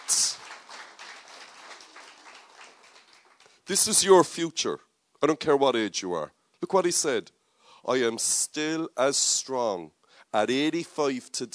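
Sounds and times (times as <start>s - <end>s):
audience applause: 0.0s - 3.6s
speech: 3.7s - 11.5s.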